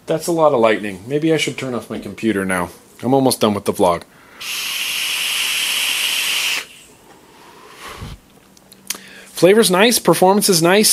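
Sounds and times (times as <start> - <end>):
speech: 0.1 - 4.8, 9.4 - 10.9
vaporizer coil firing and sizzling the liquid: 4.2 - 8.3.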